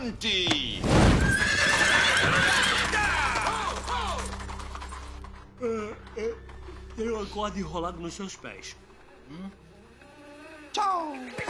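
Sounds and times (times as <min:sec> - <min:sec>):
speech: 0:00.0 - 0:02.6, 0:07.2 - 0:09.6, 0:10.8 - 0:11.4
horse whinnying: 0:01.1 - 0:04.3
horse hooves clattering: 0:01.3 - 0:07.2.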